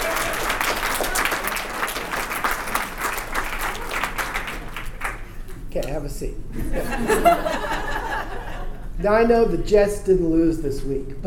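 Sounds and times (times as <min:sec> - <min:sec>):
audience applause: 0:00.0 - 0:05.5
speech: 0:05.8 - 0:07.8, 0:09.0 - 0:11.2
laughter: 0:06.6 - 0:08.9.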